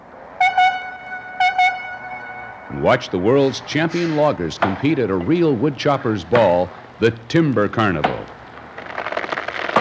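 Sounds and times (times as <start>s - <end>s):
faint steady whine: 0.0s - 9.7s
donkey engine whistle toots: 0.4s - 2.7s
speech: 2.7s - 8.4s.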